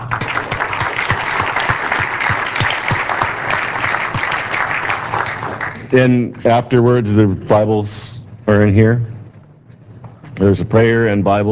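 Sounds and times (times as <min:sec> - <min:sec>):
audience applause: 0:00.0 - 0:05.9
speech: 0:05.9 - 0:09.1, 0:10.4 - 0:11.4.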